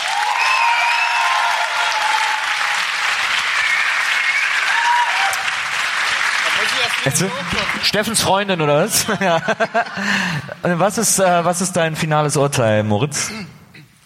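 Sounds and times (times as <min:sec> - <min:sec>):
faint voices and whoops: 0:00.0 - 0:02.8, 0:03.6 - 0:05.6
audience applause: 0:00.0 - 0:08.9
speech: 0:07.0 - 0:13.6
laughter: 0:08.8 - 0:10.7.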